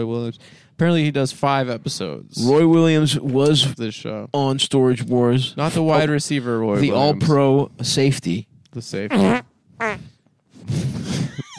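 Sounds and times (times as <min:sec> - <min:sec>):
speech: 0:00.0 - 0:09.5
fart on mic: 0:09.1 - 0:10.2.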